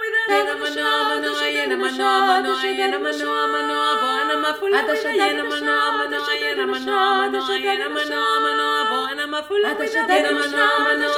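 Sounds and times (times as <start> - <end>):
three voices: 0.1 - 11.1.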